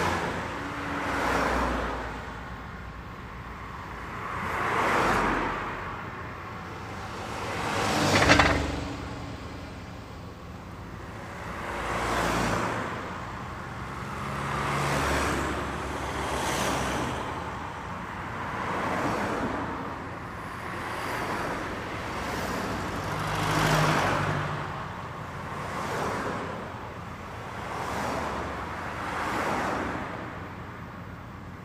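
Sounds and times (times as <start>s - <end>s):
traffic: 0.0s - 31.6s.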